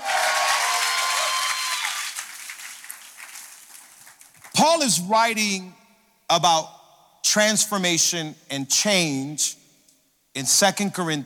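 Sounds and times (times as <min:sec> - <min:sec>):
large crowd applauding: 0:00.0 - 0:04.6
speech: 0:04.6 - 0:09.6, 0:10.4 - 0:11.2.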